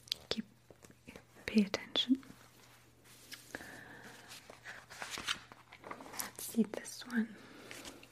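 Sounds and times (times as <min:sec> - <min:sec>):
speech: 0:01.6 - 0:02.2, 0:06.6 - 0:07.4
book page turning: 0:02.4 - 0:06.8.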